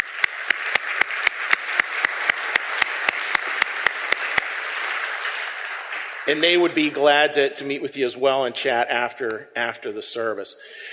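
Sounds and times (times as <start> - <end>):
audience round of applause: 0.0 - 7.3
speech: 6.3 - 10.9.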